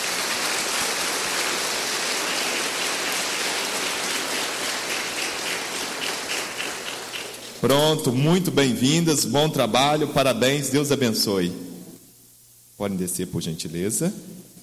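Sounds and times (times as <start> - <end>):
crowd audience applause: 0.0 - 7.6
speech: 7.6 - 11.7, 12.8 - 14.5.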